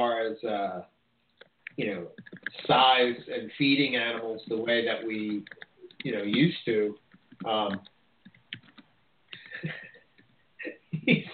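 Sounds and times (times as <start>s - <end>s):
speech: 0.0s - 1.0s, 1.8s - 7.9s, 9.6s - 9.8s
computer keyboard typing: 1.4s - 2.7s, 5.2s - 6.5s, 7.1s - 10.4s.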